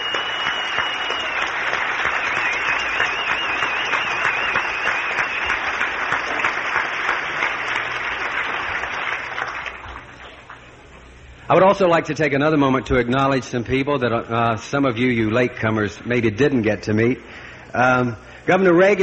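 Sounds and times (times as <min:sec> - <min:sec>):
audience applauding a singing group: 0:00.0 - 0:10.6
speech: 0:11.5 - 0:19.0.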